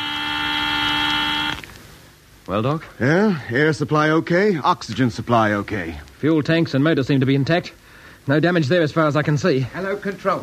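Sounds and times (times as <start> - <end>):
alarm buzzer sounding in spacecraft cabin: 0.0 - 1.6
speech: 2.5 - 10.4.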